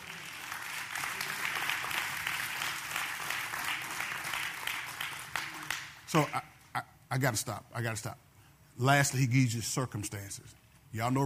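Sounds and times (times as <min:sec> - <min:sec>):
audience clapping: 0:00.0 - 0:06.4
speech: 0:06.1 - 0:11.2.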